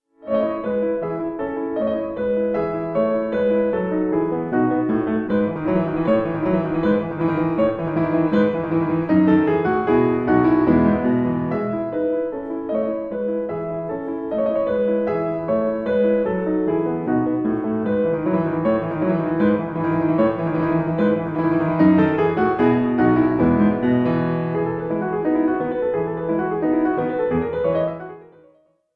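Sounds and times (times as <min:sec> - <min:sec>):
keyboard suite in E major: 0:00.0 - 0:28.6.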